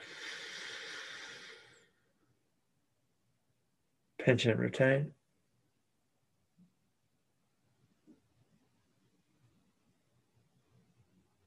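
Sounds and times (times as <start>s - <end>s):
slow inhale through the left nostril during a breathing exercise: 0.0s - 2.1s
speech: 4.2s - 5.2s.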